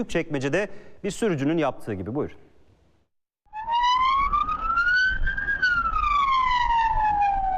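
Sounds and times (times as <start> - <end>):
speech: 0.0 - 2.5
ambulance siren wailing in traffic in Büyükçekmece, Istanbul: 3.5 - 7.5.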